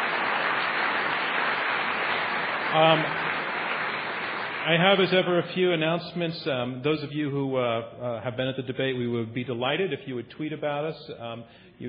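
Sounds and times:
audience applause: 0.0 - 5.4
speech: 2.7 - 3.3, 4.6 - 11.8.

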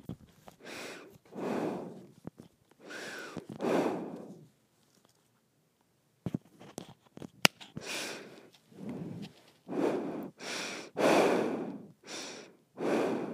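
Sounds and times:
nose breathing: 0.6 - 2.2, 2.8 - 4.5, 7.8 - 13.3.

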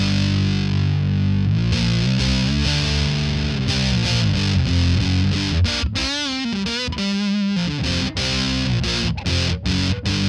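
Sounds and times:
electric guitar through a fuzz pedal on Pi setting: 0.0 - 10.2.

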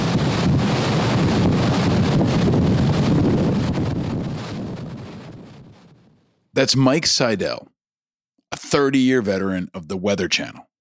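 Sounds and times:
hurricane wind in the eye wall of a high-end Cat 4: 0.0 - 7.4
speech: 6.6 - 7.7, 8.5 - 10.7.

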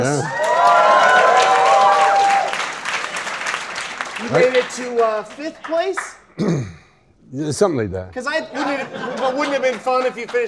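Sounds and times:
speech: 0.0 - 0.4, 4.2 - 6.7, 7.3 - 10.4
people cheering and whooping: 0.0 - 2.8
audience applause: 0.0 - 6.2, 8.8 - 10.4
laughter: 8.3 - 10.4.

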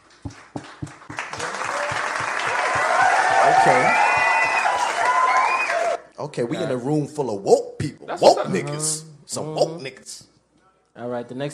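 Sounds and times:
crowd applause: 0.0 - 6.0
speech: 6.4 - 10.3, 11.0 - 11.5.

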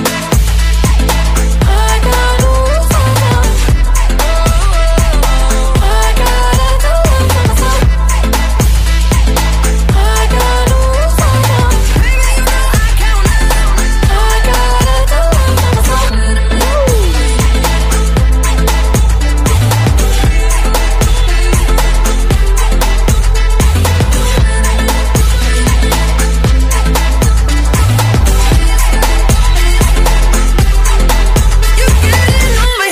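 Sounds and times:
pop song: 0.0 - 32.9.

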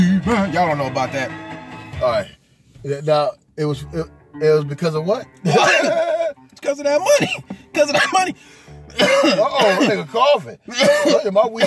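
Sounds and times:
speech: 0.2 - 11.6
man coughing after smoking: 5.4 - 6.3, 7.0 - 8.3, 8.9 - 11.6.

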